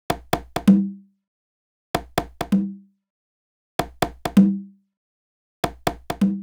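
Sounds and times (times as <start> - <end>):
big house congas: 0.1 - 1.0, 2.0 - 2.8, 3.8 - 4.7, 5.6 - 6.4.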